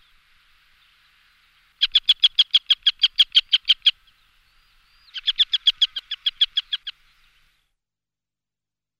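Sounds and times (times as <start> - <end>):
Montagu's harrier giving shrill yikking notes: 1.8 - 4.0, 5.1 - 7.0.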